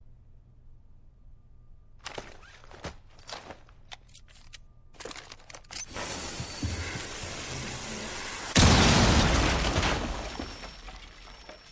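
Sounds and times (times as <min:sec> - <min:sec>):
thermite grenade burning: 0:05.9 - 0:09.7.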